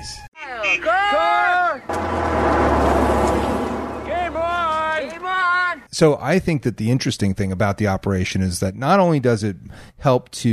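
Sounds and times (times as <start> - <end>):
speech: 0.0 - 1.2, 6.0 - 10.5
sirens passing on Santa Monica Boulevard: 1.9 - 5.4.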